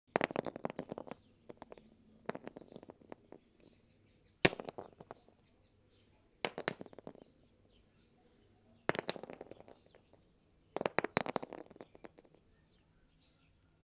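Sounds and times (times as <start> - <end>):
small rock falling and rolling: 0.1 - 3.4, 4.4 - 5.4, 6.4 - 7.4, 8.8 - 10.2, 10.8 - 12.4.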